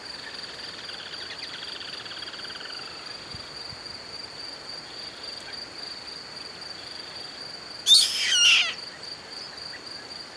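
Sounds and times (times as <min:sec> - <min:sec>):
harsh bird call: 0:07.9 - 0:08.8.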